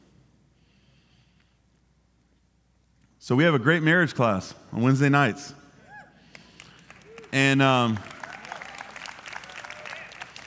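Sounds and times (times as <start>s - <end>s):
speech: 3.2s - 5.6s, 7.3s - 8.1s
audience clapping: 6.3s - 10.4s.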